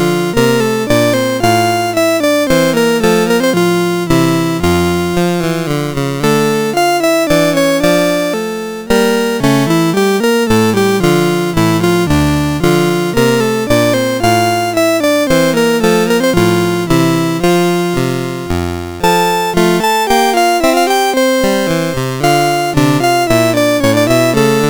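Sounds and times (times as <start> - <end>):
chiptune music on CSG8580R5 sound chip: 0.0 - 24.6.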